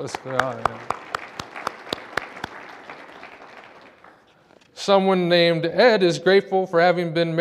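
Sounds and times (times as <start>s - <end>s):
speech: 0.0s - 1.0s, 4.8s - 7.3s
office coworkers clapping: 0.0s - 4.7s.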